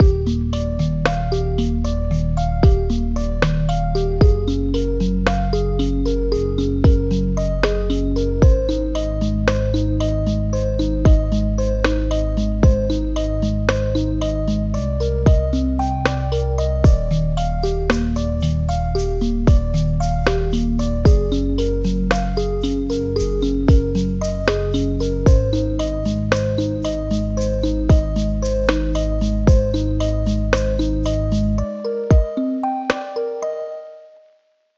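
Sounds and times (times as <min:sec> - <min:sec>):
lo-fi music: 0:00.0 - 0:34.3.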